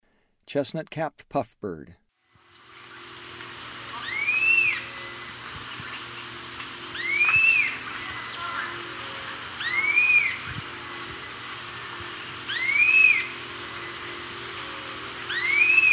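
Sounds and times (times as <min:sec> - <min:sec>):
chestnut-capped puffbird whistled calls: 0:04.0 - 0:05.5, 0:06.8 - 0:11.0, 0:12.4 - 0:14.5, 0:15.2 - 0:15.9.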